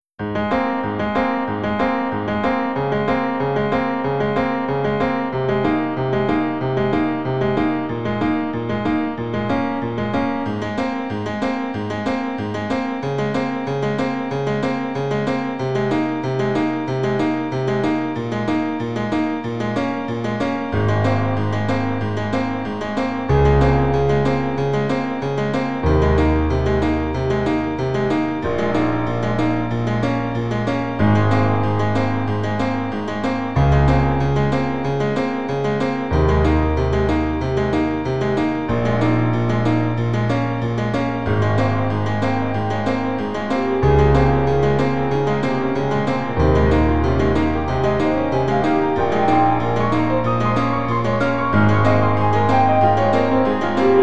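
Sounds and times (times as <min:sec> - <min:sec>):
piano: 0:00.0 - 0:54.0.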